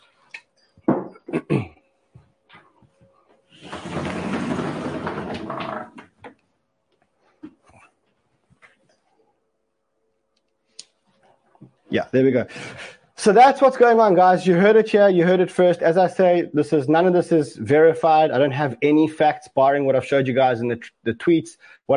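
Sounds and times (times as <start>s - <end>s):
window being opened: 3.6s - 6.2s
speech: 11.9s - 21.9s.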